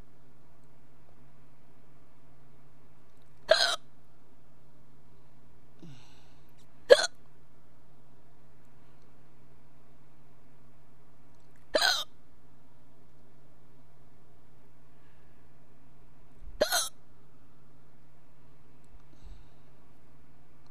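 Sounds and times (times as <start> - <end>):
person hiccuping: 3.5 - 3.8, 6.9 - 7.2, 11.8 - 12.1, 16.6 - 16.9.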